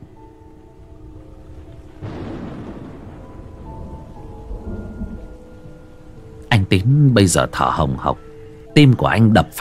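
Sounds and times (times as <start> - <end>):
steady hissing rain: 0.0 - 9.6
loud crack of thunder rolling into a low rumble: 0.8 - 6.2
speech: 6.7 - 8.2, 8.8 - 9.6.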